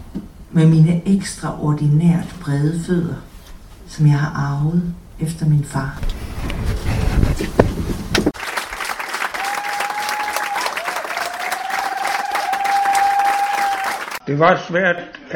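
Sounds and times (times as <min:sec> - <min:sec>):
speech: 0:00.6 - 0:03.3, 0:03.9 - 0:07.7, 0:14.3 - 0:15.3
audience clapping at the Bådteateret theatre: 0:08.1 - 0:14.2.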